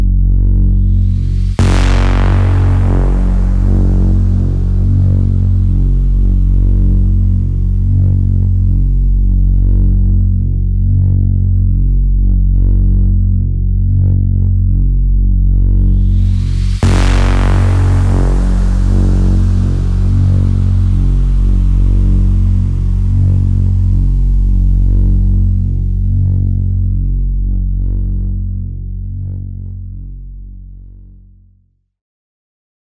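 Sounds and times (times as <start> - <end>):
drone music in F sharp minor: 0.2 - 30.5.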